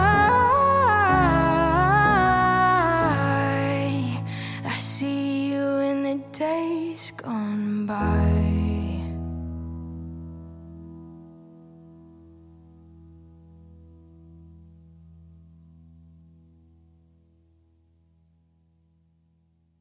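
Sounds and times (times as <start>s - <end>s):
acoustic music: 0.0s - 11.2s.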